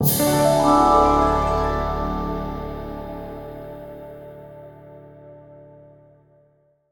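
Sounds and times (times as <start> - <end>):
music stinger: 0.0 - 5.2.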